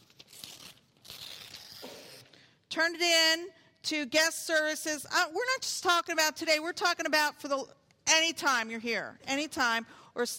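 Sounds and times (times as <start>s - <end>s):
paper slip torn off a church ministry brochure: 0.0s - 2.4s
speech: 2.8s - 10.3s.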